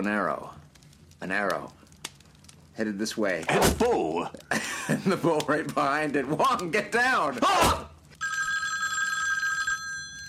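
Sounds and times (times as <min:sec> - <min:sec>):
speech: 0:00.0 - 0:00.6, 0:01.2 - 0:01.8, 0:02.8 - 0:07.9
telephone bell ringing: 0:08.2 - 0:10.2.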